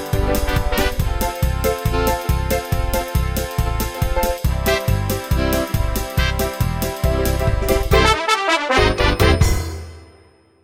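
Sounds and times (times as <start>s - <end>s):
50s French rhythmic music: 0.0s - 10.1s.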